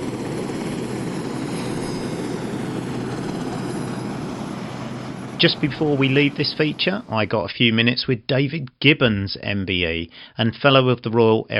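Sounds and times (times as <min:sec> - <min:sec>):
Sea King helicopter flying overhead: 0:00.0 - 0:07.3
speech: 0:05.4 - 0:11.5.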